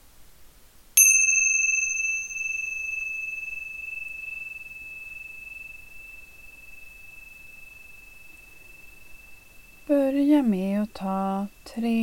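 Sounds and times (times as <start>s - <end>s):
meditation bells ringing: 1.0s - 10.6s
speech: 10.1s - 12.0s.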